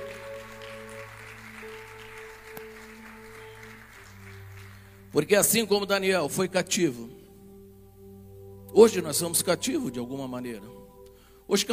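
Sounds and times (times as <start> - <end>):
audience applauding: 0.0 - 5.5
speech: 5.2 - 7.2, 8.7 - 10.8, 11.5 - 11.7.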